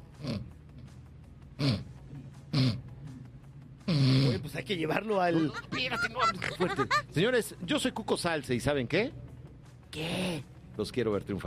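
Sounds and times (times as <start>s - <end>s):
man snoring: 3.9s - 4.5s
speech: 4.5s - 9.2s, 9.9s - 11.4s
laughter: 5.2s - 7.2s.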